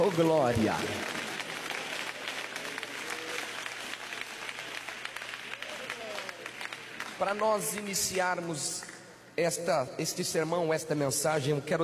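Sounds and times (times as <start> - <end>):
speech: 0.0 - 1.2, 7.2 - 11.8
church audience applauding: 0.0 - 8.2.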